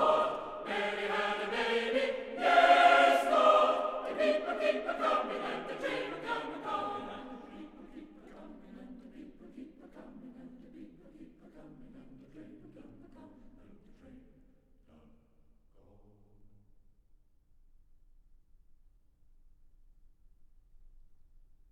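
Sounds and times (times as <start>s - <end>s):
Welsh chorus singing Christmas carols: 0.0s - 15.3s.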